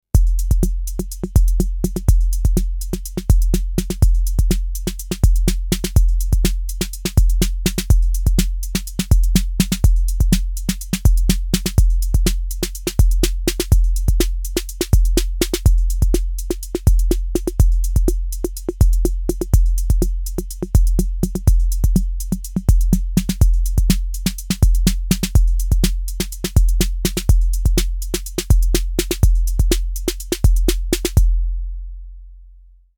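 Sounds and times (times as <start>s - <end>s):
snare drum: 0.2s - 31.3s.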